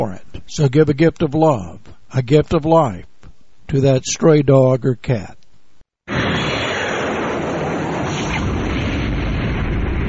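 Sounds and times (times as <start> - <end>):
speech: 0.0 - 3.1, 3.7 - 5.4
airplane hitting one of the Twin Towers: 6.1 - 10.0.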